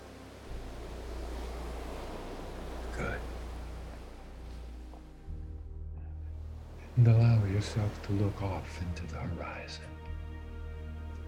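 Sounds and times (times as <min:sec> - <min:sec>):
ocean waves washing onto sand: 0:00.0 - 0:05.2, 0:06.4 - 0:09.8
speech: 0:07.0 - 0:10.0.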